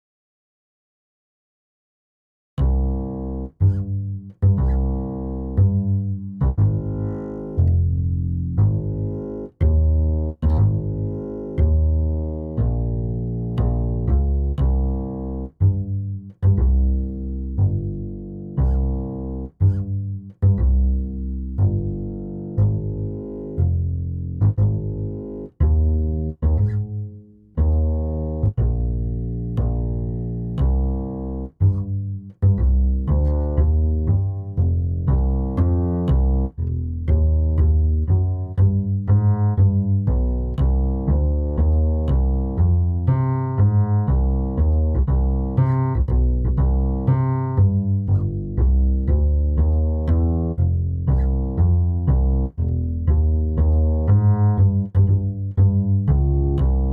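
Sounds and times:
bass: 0:02.6 - 0:56.9.

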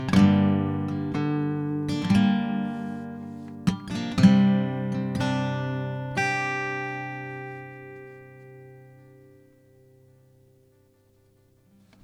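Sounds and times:
synthesized guitar chords: 0:00.0 - 0:10.7.

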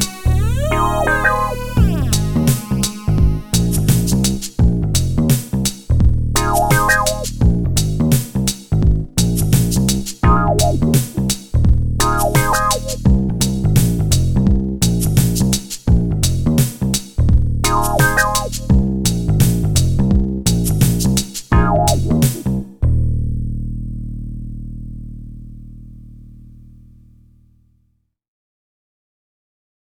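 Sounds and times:
funky groove music: 0:00.0 - 0:22.8.

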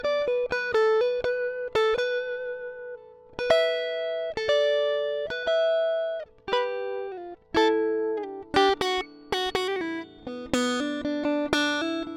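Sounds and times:
dry guitar improvisation: 0:00.0 - 0:12.1.

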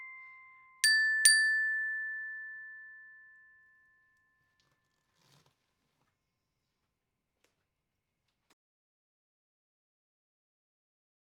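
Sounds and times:
glockenspiel: 0:00.0 - 0:04.8.

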